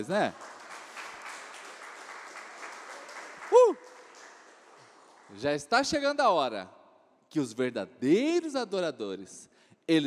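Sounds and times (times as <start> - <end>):
speech: 0.0 - 0.5, 5.3 - 10.0
audience applauding: 0.0 - 5.8.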